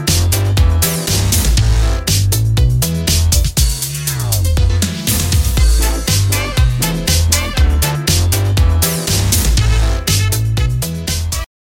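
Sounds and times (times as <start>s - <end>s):
electro swing ringtone: 0.0s - 11.4s.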